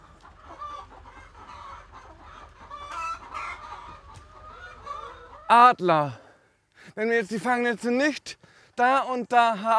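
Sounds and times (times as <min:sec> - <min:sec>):
flock of chickens clucking: 0:00.0 - 0:06.2
chicken squawks: 0:00.1 - 0:05.5
speech: 0:05.5 - 0:06.2, 0:06.9 - 0:09.7.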